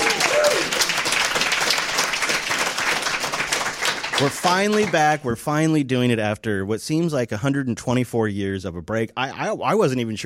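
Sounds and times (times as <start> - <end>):
audience applause: 0.0 - 5.2
speech: 4.2 - 10.2.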